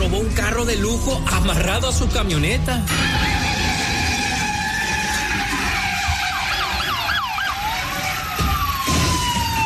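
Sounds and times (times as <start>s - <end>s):
speech: 0.2s - 3.7s
police siren: 2.4s - 9.6s.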